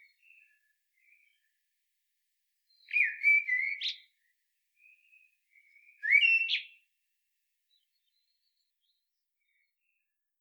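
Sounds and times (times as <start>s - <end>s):
common blackbird Turdus merula singing fluted phrases: 2.8s - 4.0s, 6.0s - 6.8s.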